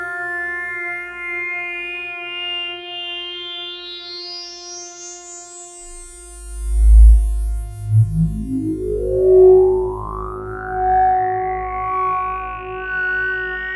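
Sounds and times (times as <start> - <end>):
Roland Jupiter-6 synthesizer tone with beautiful overtones: 5.9 - 13.7.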